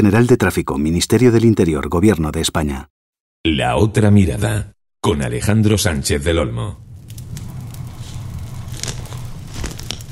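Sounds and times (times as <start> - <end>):
speech: 0.0 - 6.9
crackling campfire: 6.7 - 10.0.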